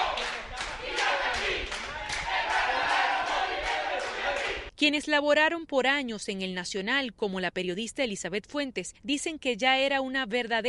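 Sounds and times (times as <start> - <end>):
clapping: 0.0 - 4.6
students shouting political slogans: 0.0 - 4.7
speech: 4.8 - 10.6.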